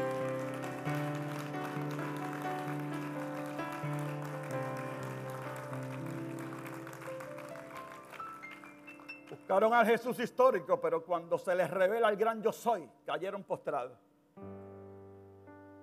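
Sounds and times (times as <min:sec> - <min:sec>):
audience applause: 0:00.0 - 0:09.7
speech: 0:09.5 - 0:14.5.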